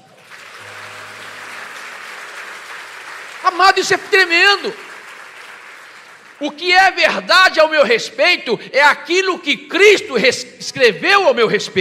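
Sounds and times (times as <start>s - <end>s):
audience applause: 0.0s - 6.7s
speech: 3.4s - 4.8s, 6.4s - 11.7s.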